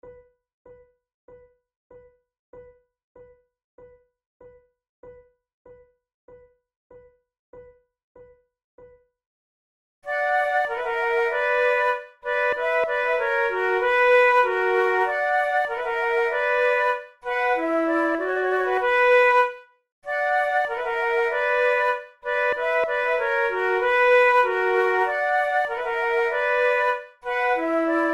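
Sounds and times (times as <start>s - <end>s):
trio sonata rondeau on flute: 10.1s - 28.1s.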